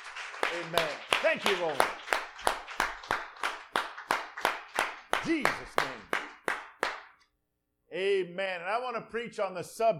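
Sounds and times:
audience clapping in unison: 0.0s - 7.2s
speech: 0.5s - 2.0s, 5.2s - 6.2s, 7.9s - 9.9s.

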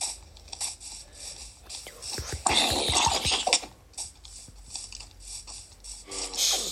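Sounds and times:
video game skeleton monster shooting arrows: 1.8s - 3.7s.

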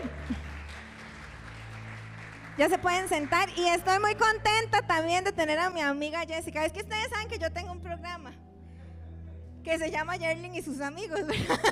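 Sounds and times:
audience applause: 0.0s - 3.5s
speech: 2.6s - 8.4s, 9.6s - 11.6s
laughter: 11.2s - 11.6s.

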